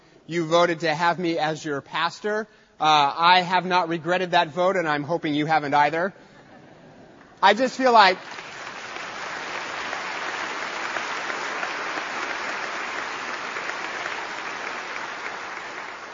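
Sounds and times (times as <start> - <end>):
speech: 0.3 - 6.3, 7.4 - 8.4
audience applause: 8.0 - 16.1.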